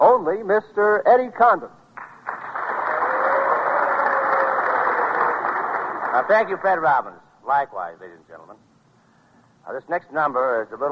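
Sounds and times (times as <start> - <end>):
speech: 0.0 - 1.8, 6.2 - 8.7, 9.6 - 10.9
packed house applause at Town Hall in New York City: 2.0 - 6.8.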